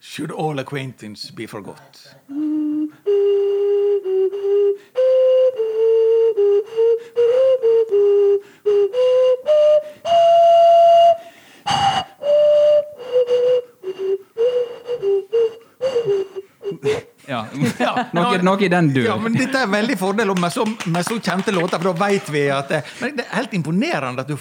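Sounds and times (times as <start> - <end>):
speech: 0.1 - 2.6, 17.6 - 24.3
simple tune played on a flute: 2.3 - 16.8
laughter: 16.7 - 20.0, 21.1 - 23.2.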